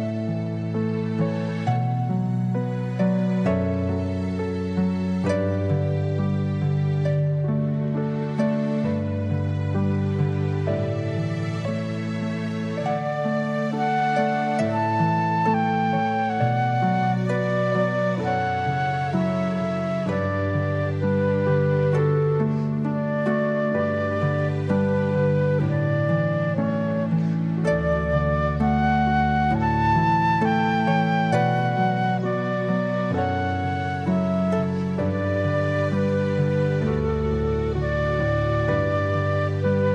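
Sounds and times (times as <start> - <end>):
baroque canon: 0.2 - 39.9.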